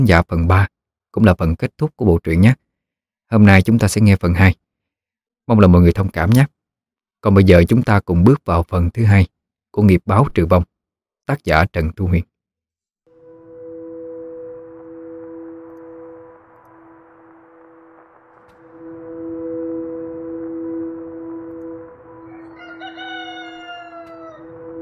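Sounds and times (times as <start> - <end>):
speech: 0.0 - 2.6, 3.3 - 4.6, 5.5 - 6.6, 7.2 - 10.7, 11.3 - 12.3
rooster crowing at dawn: 22.1 - 24.8.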